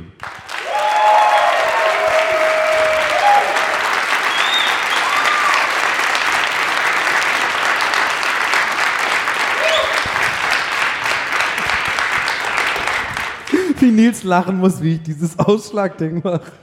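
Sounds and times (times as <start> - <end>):
applause from a large crowd: 0.0 - 13.9
faint whoops and voices: 0.6 - 3.7, 4.3 - 5.7, 9.6 - 10.0
speech: 14.0 - 16.6.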